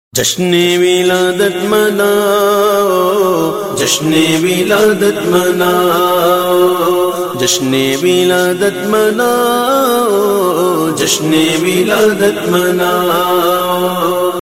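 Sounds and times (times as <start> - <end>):
naat devotional singing ringtone: 0.2 - 14.4.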